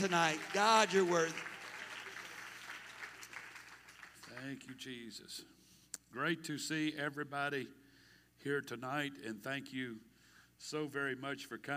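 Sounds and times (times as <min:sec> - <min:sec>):
speech: 0:00.0 - 0:01.5, 0:04.4 - 0:07.8, 0:08.4 - 0:11.7
audience clapping hands: 0:00.0 - 0:04.9.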